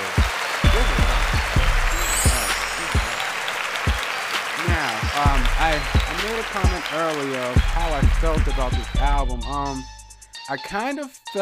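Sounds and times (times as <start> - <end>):
audience applause for a rapper: 0.0 - 9.0
thumping low bass beat: 0.6 - 3.2, 5.2 - 6.8, 7.6 - 10.2
speech: 5.2 - 9.9, 10.5 - 11.4.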